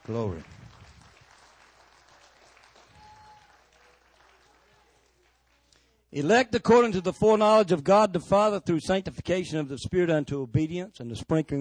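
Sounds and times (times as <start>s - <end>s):
audience clapping in praise: 0.0s - 6.1s
speech: 0.1s - 0.6s, 6.1s - 11.5s.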